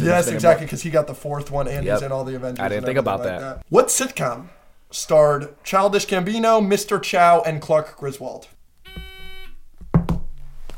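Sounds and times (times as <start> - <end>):
speech: 0.0 - 8.6
quiz buzzer being pressed: 8.8 - 9.6.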